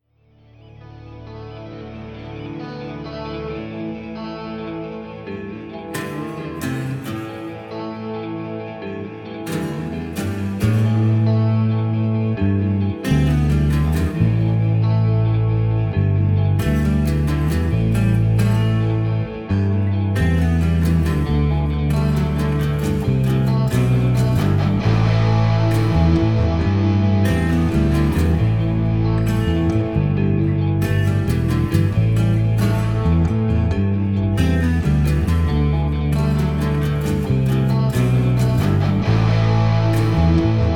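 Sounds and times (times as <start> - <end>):
rock music loop: 3.8 - 40.7.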